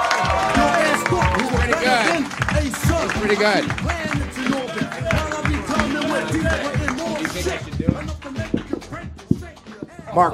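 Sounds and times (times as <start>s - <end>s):
audience applause: 0.0s - 8.2s
speech: 3.3s - 4.0s, 10.1s - 10.3s.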